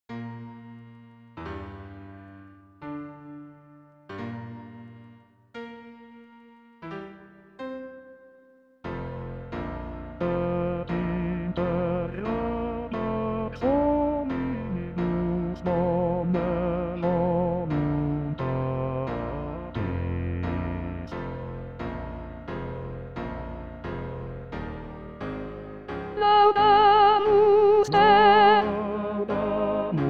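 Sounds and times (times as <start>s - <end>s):
soprano singing: 10.2s - 21.1s, 26.2s - 30.0s.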